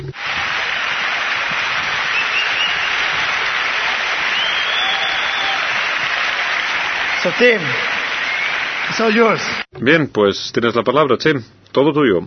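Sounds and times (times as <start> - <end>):
audience applause: 0.1 - 9.7
speech: 7.2 - 7.9, 9.0 - 12.2.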